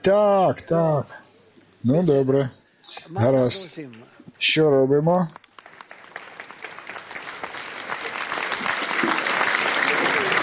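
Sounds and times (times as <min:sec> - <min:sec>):
speech: 0:00.0 - 0:05.4
audience applause: 0:05.5 - 0:10.4.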